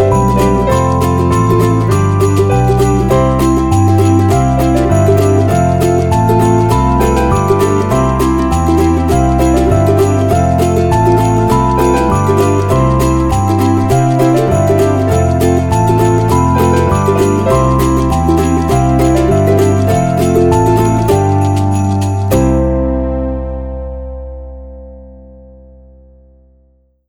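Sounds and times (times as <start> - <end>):
sleigh bells: 0.0 - 22.8
uplifting ukulele: 0.0 - 23.8.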